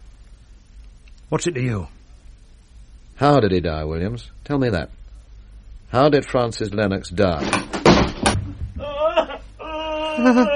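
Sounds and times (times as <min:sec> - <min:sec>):
speech: 0:01.3 - 0:02.0, 0:03.2 - 0:05.0, 0:05.9 - 0:07.6, 0:10.2 - 0:10.5
person falling against a door: 0:07.4 - 0:09.0.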